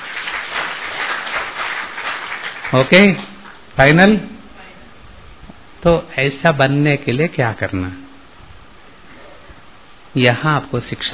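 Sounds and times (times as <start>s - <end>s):
audience clapping during a spiritual talk: 0.0s - 3.6s
speech: 2.7s - 4.3s, 5.8s - 8.0s, 10.1s - 11.1s.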